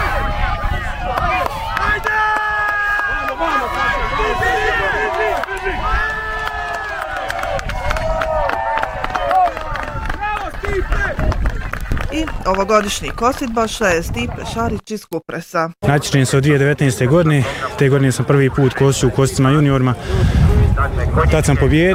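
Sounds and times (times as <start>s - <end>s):
spectators cheering and shouting encouragement at a scything competition finale: 0.0s - 13.2s
speech: 12.5s - 21.9s.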